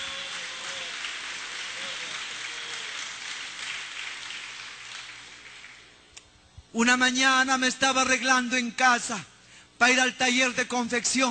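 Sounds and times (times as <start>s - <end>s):
applause: 0.0s - 6.0s
speech: 6.8s - 11.2s.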